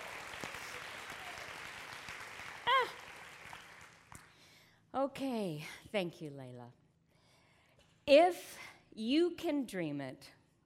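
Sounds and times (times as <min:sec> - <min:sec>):
audience applause: 0:00.0 - 0:04.3
speech: 0:05.0 - 0:06.8, 0:08.1 - 0:10.4.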